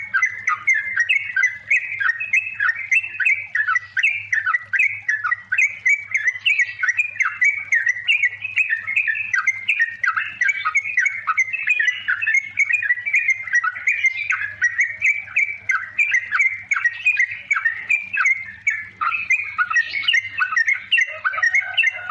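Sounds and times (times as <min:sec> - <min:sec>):
yellow-vented bulbul song: 0:00.0 - 0:22.0.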